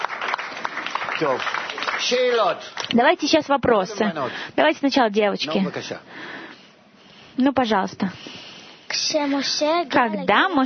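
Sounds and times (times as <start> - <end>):
audience applause: 0.0 - 2.9
speech: 1.2 - 6.4, 7.4 - 10.6.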